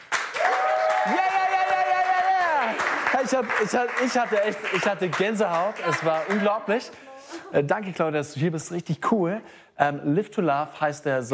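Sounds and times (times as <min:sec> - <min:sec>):
audience applause: 0:00.0 - 0:06.8
speech: 0:01.0 - 0:01.3, 0:03.3 - 0:11.3.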